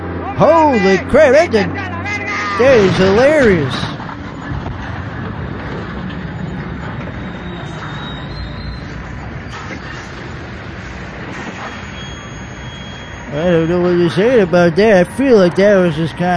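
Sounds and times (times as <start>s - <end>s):
train passing a railroad crossing: 0.0s - 16.3s
speech: 0.4s - 2.0s, 2.6s - 3.9s, 13.4s - 16.3s
thin high-pitched whine: 2.6s - 16.3s.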